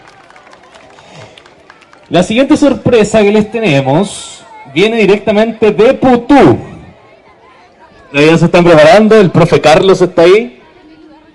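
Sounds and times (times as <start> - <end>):
crowd clapping: 0.0 - 3.4
speech: 2.1 - 6.7, 8.1 - 10.6.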